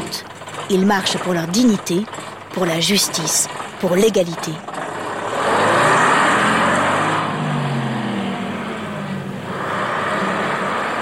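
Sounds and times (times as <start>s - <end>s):
broad wash of road noise: 0.0s - 11.0s
heavy city bus engine rumbling past in Montgomery: 0.0s - 11.0s
speech: 0.7s - 4.8s
vehicle passing: 4.7s - 11.0s.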